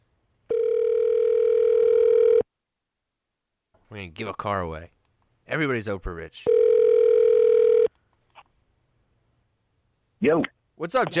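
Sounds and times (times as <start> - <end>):
outgoing phone call ringing tone: 0.5 - 2.5, 6.5 - 7.9
speech: 4.0 - 6.6, 10.2 - 11.1.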